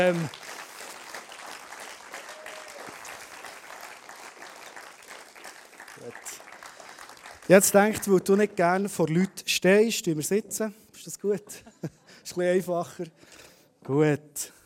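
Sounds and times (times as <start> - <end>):
speech: 0.0 - 0.4, 7.5 - 14.6
audience applause: 0.0 - 8.5
laughter: 11.5 - 12.2.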